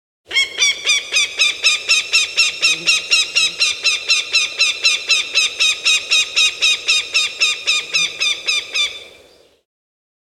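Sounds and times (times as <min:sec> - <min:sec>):
falcon sharp piercing calls: 0:00.3 - 0:09.4.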